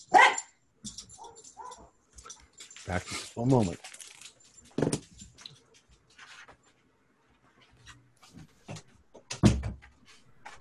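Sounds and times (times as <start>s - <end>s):
dog barking: 0.1s - 0.5s, 1.2s - 1.9s
speech: 2.9s - 3.9s.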